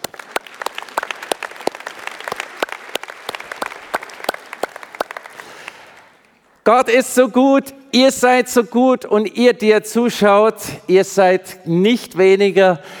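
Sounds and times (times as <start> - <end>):
crowd applauding: 0.0 - 6.4
speech: 6.7 - 12.9.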